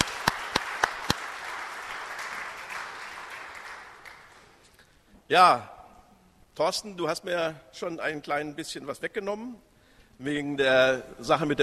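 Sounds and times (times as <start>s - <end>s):
crowd applause: 0.0s - 4.6s
sharp claps: 0.0s - 4.7s
speech: 5.3s - 5.7s, 6.6s - 11.6s.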